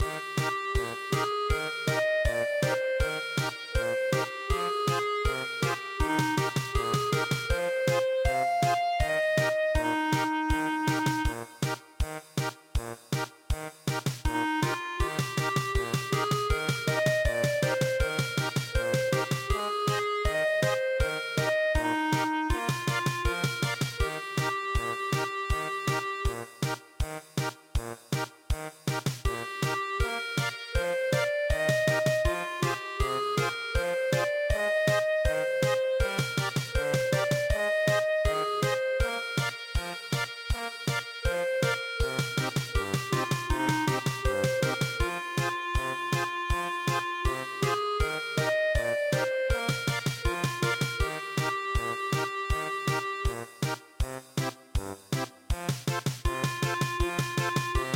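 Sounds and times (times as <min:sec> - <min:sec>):
traditional German polka in MIDI: 0:00.0 - 0:57.9.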